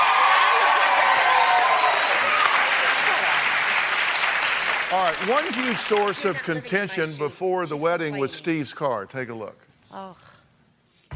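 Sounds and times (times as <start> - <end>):
studio audience clapping: 0.0 - 6.8
speech: 4.9 - 10.4.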